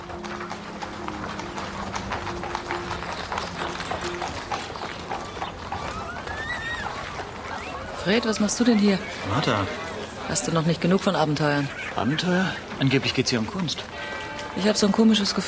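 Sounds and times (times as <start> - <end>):
horse hooves clip-clopping: 0.0 - 15.4
horse-drawn cart rolling out past a city gate: 0.0 - 15.4
faint rising whistly tones: 5.8 - 8.0
speech: 8.0 - 13.9, 14.6 - 15.4.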